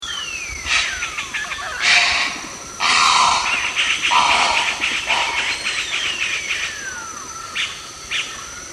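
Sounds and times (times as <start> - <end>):
garza mora heron: 0.7 - 6.8.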